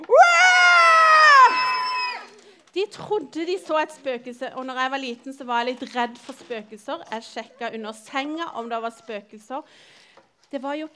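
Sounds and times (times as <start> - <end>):
voices screaming together: 0.0 - 2.4
speech: 2.9 - 10.9.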